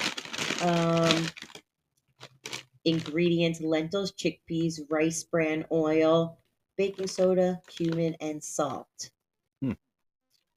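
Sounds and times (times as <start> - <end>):
Trader Joe's bag of lentil and chickpea papadum crisps crinkling: 0.0 - 1.6, 2.2 - 3.2, 6.9 - 8.0
speech: 0.6 - 1.4, 2.8 - 9.8.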